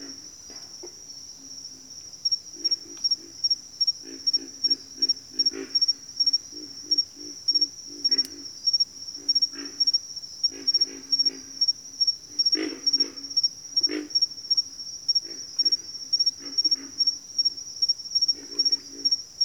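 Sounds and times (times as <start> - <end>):
pig frogs calling in a bayou: 2.6 - 11.7, 12.3 - 14.6, 15.2 - 17.5, 18.2 - 19.4.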